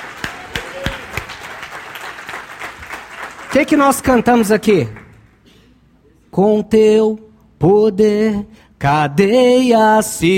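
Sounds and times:
audience applauding: 0.0 - 5.2
speech: 3.6 - 5.0, 6.4 - 10.3.

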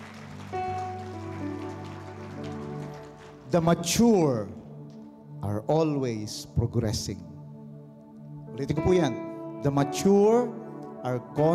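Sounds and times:
audience clapping loudly: 0.0 - 4.0
speech: 3.5 - 4.6, 5.5 - 7.3, 8.6 - 11.5.

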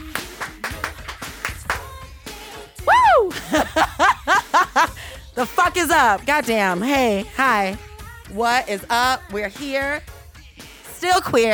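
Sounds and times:
one person clapping hands: 0.0 - 2.0
laughter: 2.9 - 5.2
speech: 5.4 - 10.1, 11.0 - 11.5.

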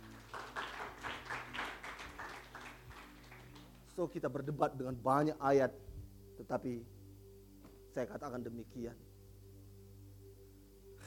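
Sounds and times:
audience clapping hands: 0.0 - 4.6
speech: 4.0 - 7.0, 7.9 - 9.1.

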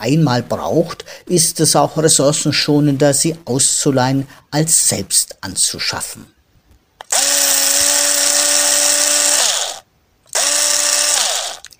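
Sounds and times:
speech: 0.0 - 6.4
cordless screwdriver motor whine: 7.0 - 11.7.

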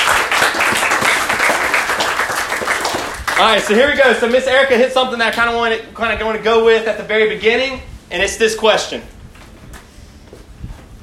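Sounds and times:
crowd applause: 0.0 - 3.8
speech: 3.4 - 9.1.

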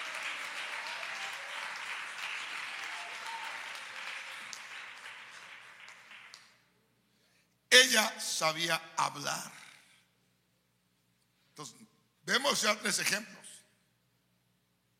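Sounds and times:
audience applause: 0.0 - 6.6
speech: 7.9 - 9.6, 11.6 - 13.4.

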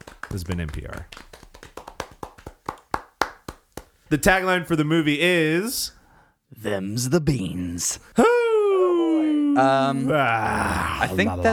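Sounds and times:
buttocks clapping: 0.0 - 4.1
speech: 0.3 - 1.2, 4.1 - 6.0, 6.6 - 8.3, 9.6 - 11.5.

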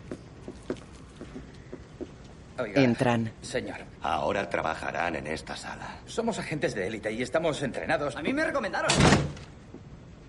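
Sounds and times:
speech: 2.6 - 9.4
door pushed shut: 8.9 - 9.5.

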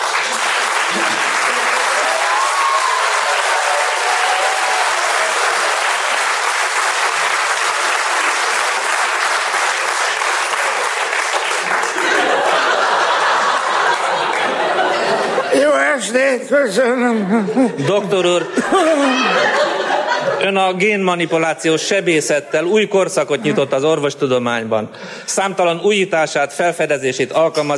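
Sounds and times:
audience applause: 0.0 - 15.5
laughter: 0.8 - 2.2, 11.6 - 16.2, 16.8 - 20.8, 22.4 - 24.0
speech: 16.5 - 19.7, 20.4 - 27.7.

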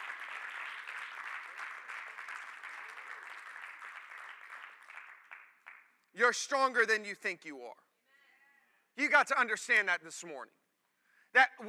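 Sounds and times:
audience clapping hands: 0.0 - 6.1
speech: 6.2 - 7.8, 9.0 - 10.6, 11.3 - 11.6.

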